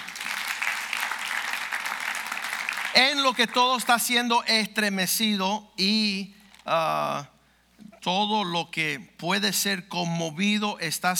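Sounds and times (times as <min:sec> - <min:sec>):
audience applauding: 0:00.0 - 0:03.9
speech: 0:03.0 - 0:07.3, 0:08.0 - 0:11.1.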